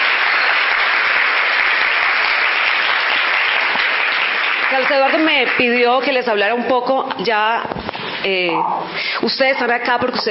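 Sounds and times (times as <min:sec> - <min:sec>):
large audience applause: 0:00.0 - 0:06.1
speech: 0:04.7 - 0:10.3.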